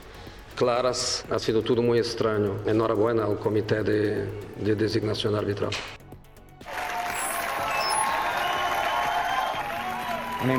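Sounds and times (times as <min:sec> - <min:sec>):
speech: 0:00.6 - 0:06.0
large audience applause: 0:06.6 - 0:10.5
crowd noise: 0:06.7 - 0:10.4.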